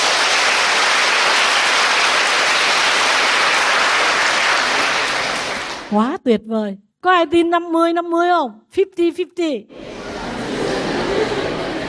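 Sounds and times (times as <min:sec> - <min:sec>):
large audience clapping at a Buddhist nun's dharma talk: 0:00.0 - 0:06.0
speech: 0:05.9 - 0:09.9
laughter: 0:09.8 - 0:11.8.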